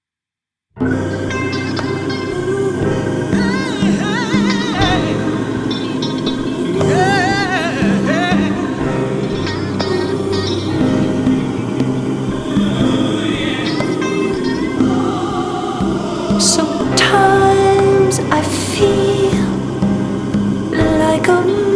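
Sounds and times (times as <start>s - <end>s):
person singing: 0.8s - 21.7s.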